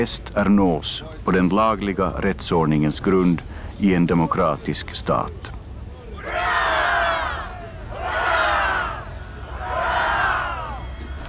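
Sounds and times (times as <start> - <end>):
speech: 0.0 - 5.6
crowd shouting cheers: 6.0 - 11.2.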